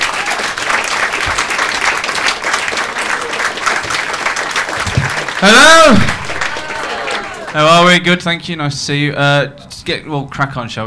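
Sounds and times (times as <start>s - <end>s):
audience applause: 0.0s - 7.9s
speech: 5.4s - 6.2s, 7.6s - 10.8s.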